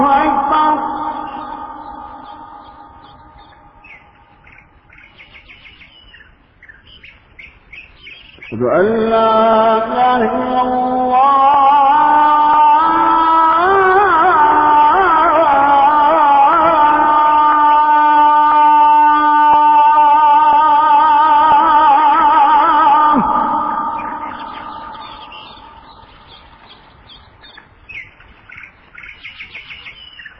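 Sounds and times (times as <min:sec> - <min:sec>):
dawn call to prayer: 0:00.0 - 0:04.9, 0:08.4 - 0:27.0
birds chirping in the morning: 0:00.0 - 0:30.3.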